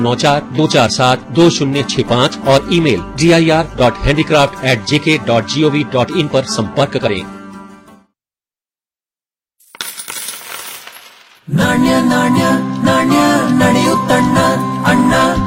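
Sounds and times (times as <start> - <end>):
speech: 0.0 - 7.4, 11.5 - 14.6
coins dropping: 9.6 - 11.5.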